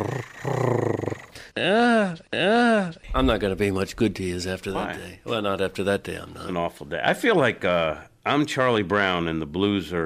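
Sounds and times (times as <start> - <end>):
person imitating a cat purring: 0.0 - 1.8
speech: 3.2 - 10.0.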